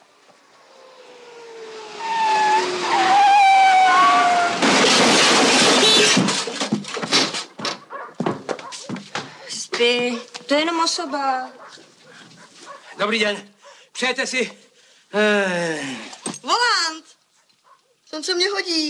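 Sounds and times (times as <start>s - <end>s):
drunk driver's car tire squealing: 0.0s - 6.6s
loud rushing roar of a car crashing into a lake: 0.5s - 6.0s
sharp thuds and bursts: 4.5s - 10.2s
speech: 10.5s - 11.9s, 13.0s - 16.9s, 18.2s - 18.8s.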